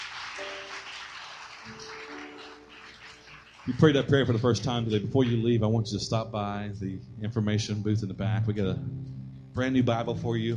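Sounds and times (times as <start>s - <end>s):
audience applause at a prayer gathering: 0.0s - 5.6s
speech: 3.7s - 10.5s.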